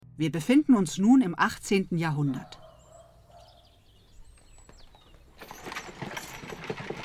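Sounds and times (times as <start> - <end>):
speech: 0.2 - 2.6
thin bird calls: 2.2 - 5.4
clattering hoofbeats of an 18th-century horse-drawn carriage: 4.2 - 7.0
rolling rattle of an 18th-century horse-drawn carriage: 5.2 - 7.0.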